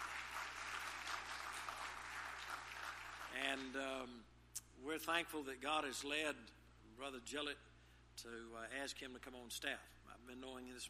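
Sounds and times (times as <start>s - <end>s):
audience applauding to welcome a new staff member: 0.0s - 3.8s
speech: 3.3s - 10.8s.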